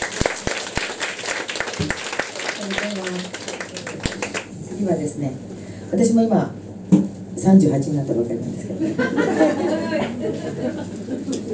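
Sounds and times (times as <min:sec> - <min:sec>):
applause: 0:00.0 - 0:04.5
speech: 0:02.6 - 0:03.5, 0:04.8 - 0:06.6, 0:07.4 - 0:11.5
laughter: 0:08.8 - 0:11.5.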